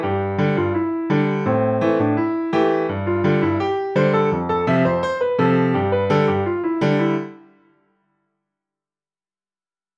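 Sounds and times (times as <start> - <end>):
advanced solo piano: 0.0 - 7.9.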